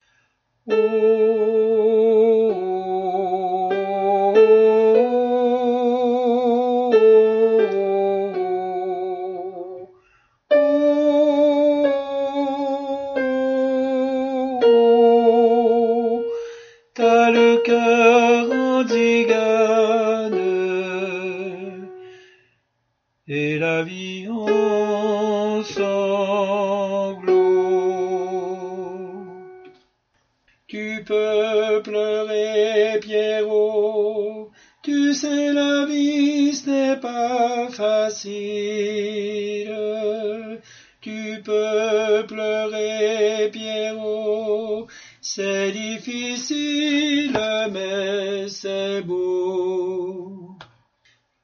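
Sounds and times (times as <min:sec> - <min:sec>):
tenor singing: 0:00.7 - 0:09.9, 0:10.5 - 0:22.3, 0:23.3 - 0:29.8, 0:30.7 - 0:50.7.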